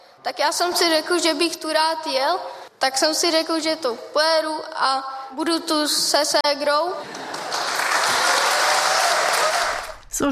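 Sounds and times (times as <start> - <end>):
speech: 0.2 - 7.2, 10.2 - 10.3
enthusiastic audience applause rewarding a speaker: 7.1 - 10.0.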